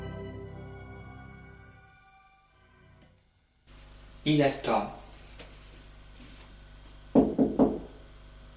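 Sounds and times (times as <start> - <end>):
speech: 4.3 - 5.0
knocking on a door: 7.1 - 7.9.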